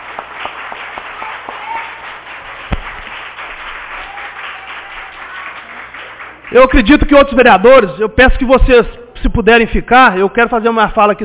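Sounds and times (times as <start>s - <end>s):
crowd applauding: 0.0s - 7.2s
speech: 6.5s - 11.2s.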